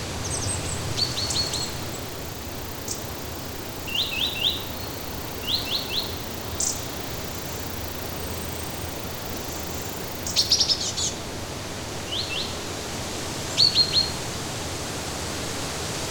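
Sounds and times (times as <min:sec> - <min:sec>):
steady rainforest background hiss: 0:00.0 - 0:16.0
short high rainforest bird chirps and trills: 0:00.2 - 0:11.1.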